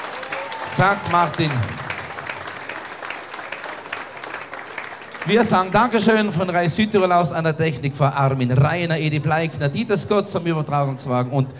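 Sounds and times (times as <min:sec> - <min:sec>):
audience applause: 0:00.0 - 0:06.6
speech: 0:00.7 - 0:01.9, 0:05.3 - 0:11.5.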